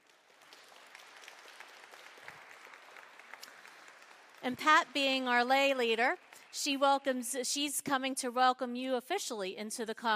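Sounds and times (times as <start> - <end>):
audience applauding: 0.0 - 7.2
speech: 4.4 - 10.1.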